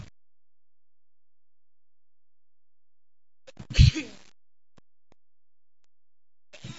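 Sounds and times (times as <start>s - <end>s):
man sneezing: 3.7s - 4.1s.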